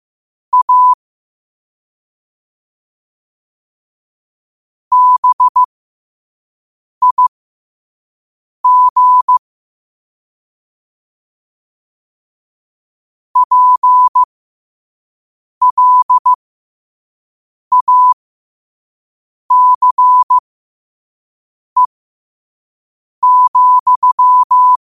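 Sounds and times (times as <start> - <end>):
morse code at 5 wpm: 0.6 - 1.0, 4.9 - 5.7, 7.0 - 7.3, 8.6 - 9.4, 13.4 - 14.3, 15.6 - 16.4, 17.7 - 18.2, 19.5 - 20.4, 23.2 - 24.8.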